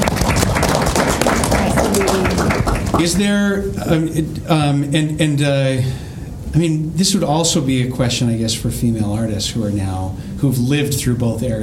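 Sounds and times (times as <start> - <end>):
audience applause: 0.0 - 3.4
speech: 3.0 - 11.6.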